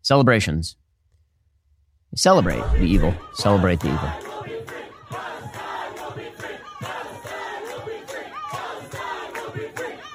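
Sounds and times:
speech: 0.1s - 0.8s, 2.1s - 4.3s
crowd chanting at a street rally: 2.4s - 10.1s.

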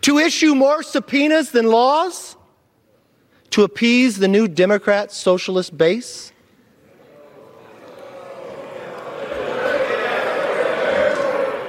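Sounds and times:
speech: 0.0s - 2.4s, 3.6s - 6.3s
audience booing: 7.1s - 11.6s.

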